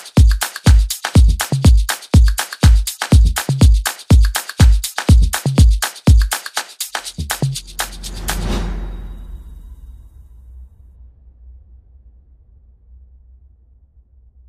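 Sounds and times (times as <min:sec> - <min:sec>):
afro house remix music: 0:00.0 - 0:08.6.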